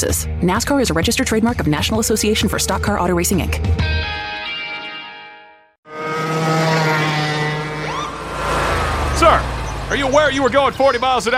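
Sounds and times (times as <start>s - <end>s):
speech: 0.0s - 4.2s, 9.3s - 11.3s
lawnmower engine running at speed on a residential street: 5.9s - 11.3s.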